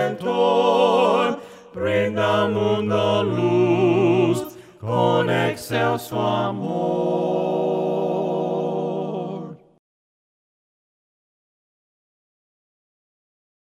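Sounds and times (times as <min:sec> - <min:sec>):
voices singing hymns a cappella: 0:00.0 - 0:09.8.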